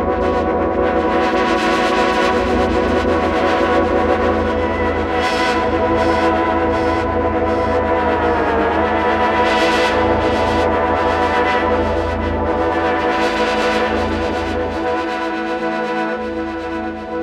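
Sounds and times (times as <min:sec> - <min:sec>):
sweep pad: 0:00.2 - 0:17.1.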